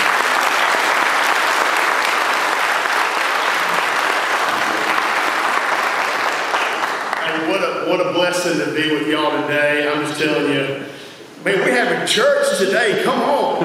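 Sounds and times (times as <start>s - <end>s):
audience applause welcoming a worship leader to a church platform: 0.0s - 7.6s
speech: 7.9s - 13.6s.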